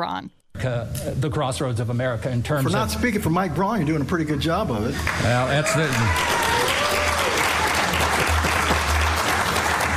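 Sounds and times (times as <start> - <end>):
speech: 0.0 - 6.5
audience applause: 5.0 - 9.9.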